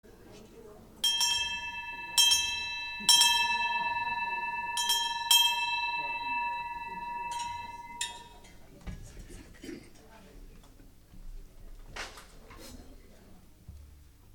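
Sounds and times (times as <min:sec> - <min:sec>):
bell ringing: 0:01.0 - 0:08.6.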